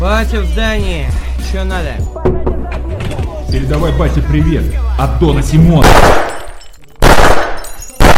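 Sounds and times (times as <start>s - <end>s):
speech: 0.1s - 2.1s, 3.5s - 6.3s
glass bottle smashing: 6.2s - 8.1s.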